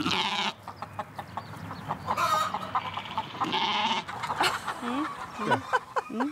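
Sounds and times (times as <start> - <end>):
goat-like bleat: 0.0 - 0.6, 2.4 - 4.1
large flock of chickens clucking and squawking outdoors: 0.0 - 6.3.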